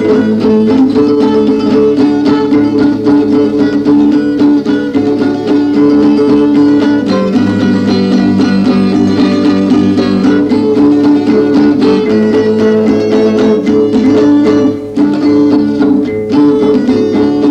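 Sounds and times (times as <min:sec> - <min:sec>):
guitar waltz played four-handed: 0:00.0 - 0:17.4.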